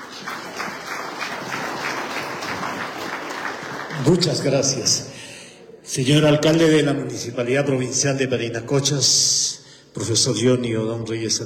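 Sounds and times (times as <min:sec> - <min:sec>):
applause: 0:00.0 - 0:05.0
speech: 0:04.0 - 0:05.2, 0:05.9 - 0:11.4.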